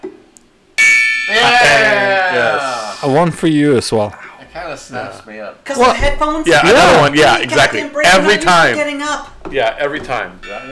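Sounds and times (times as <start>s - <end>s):
gong being struck: 0.8s - 3.2s
speech: 2.6s - 4.2s, 4.8s - 10.7s.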